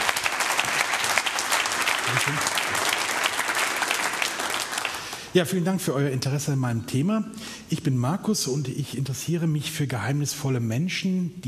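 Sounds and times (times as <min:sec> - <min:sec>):
audience applause: 0:00.0 - 0:05.3
speech: 0:02.2 - 0:02.8, 0:05.3 - 0:11.4.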